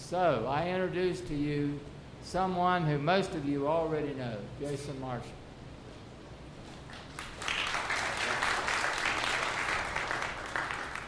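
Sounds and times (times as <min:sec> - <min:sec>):
speech: 0:00.1 - 0:05.4
audience applause: 0:06.9 - 0:11.0.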